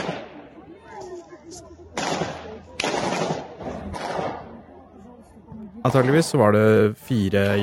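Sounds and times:
gunfire in a concert hall: 0:00.0 - 0:00.4, 0:02.0 - 0:04.5
speech: 0:05.8 - 0:07.6.

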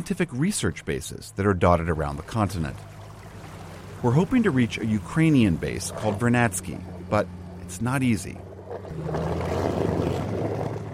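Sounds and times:
speech: 0:00.0 - 0:03.0, 0:04.0 - 0:09.6
small motorboat's outboard engine droning: 0:00.0 - 0:10.9
hull churning and scraping through sea ice: 0:08.7 - 0:10.9.

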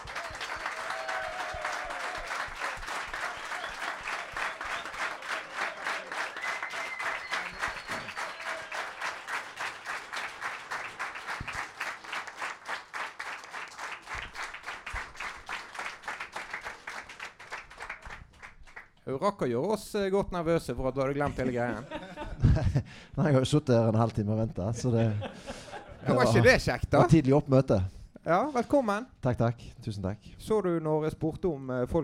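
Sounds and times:
audience applause: 0:00.0 - 0:18.9
speech: 0:19.1 - 0:32.0
laughter: 0:21.2 - 0:22.9, 0:24.8 - 0:26.6.

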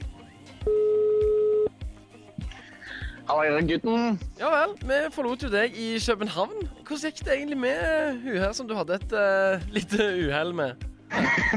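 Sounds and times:
telephone ringing tone: 0:00.6 - 0:01.7
speech: 0:03.3 - 0:11.5
laughter: 0:11.1 - 0:11.5.

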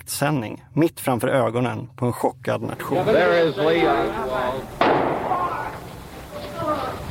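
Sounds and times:
speech: 0:00.1 - 0:05.1
murmur of voices: 0:02.8 - 0:07.1
revolver gunshot in archival broadcast: 0:04.7 - 0:05.7.

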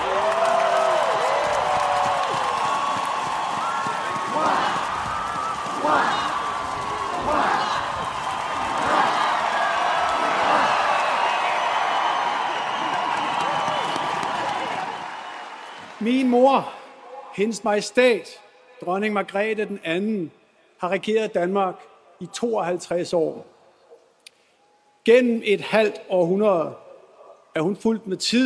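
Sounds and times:
large crowd cheering: 0:00.0 - 0:17.2
speech: 0:17.4 - 0:23.5, 0:25.0 - 0:26.8, 0:27.6 - 0:28.4.

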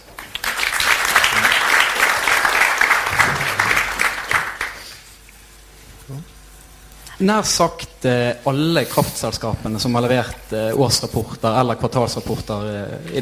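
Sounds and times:
audience applause: 0:00.0 - 0:05.1
speech: 0:07.2 - 0:13.2.

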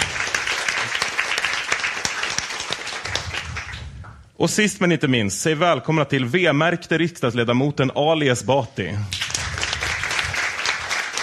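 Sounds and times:
audience applause: 0:00.0 - 0:04.1, 0:09.1 - 0:11.2
speech: 0:04.4 - 0:09.2.

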